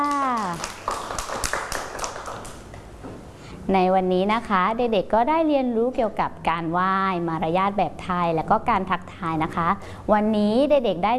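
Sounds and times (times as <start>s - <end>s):
children clapping hands: 0.0s - 2.8s
speech: 3.7s - 11.1s.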